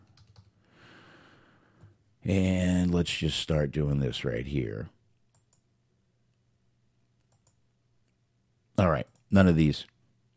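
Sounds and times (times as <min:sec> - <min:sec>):
keystrokes on a computer keyboard: 0:00.0 - 0:00.5
speech: 0:02.3 - 0:05.0, 0:08.8 - 0:09.9.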